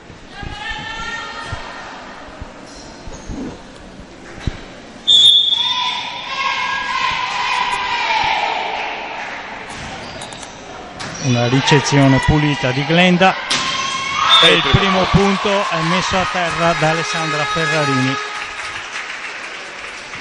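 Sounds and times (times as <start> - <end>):
volleyball match crowd noise: 0.0 - 20.1
referee's whistle starting a volleyball match: 5.0 - 6.0, 14.2 - 15.1
volleyball commentator talking: 11.3 - 13.4, 14.3 - 18.2
speech: 11.3 - 13.6, 14.4 - 18.3.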